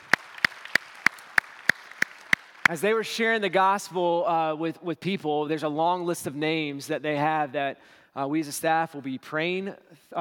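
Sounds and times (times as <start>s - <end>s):
church congregation clapping in unison: 0.0s - 3.0s
speech: 2.7s - 10.1s.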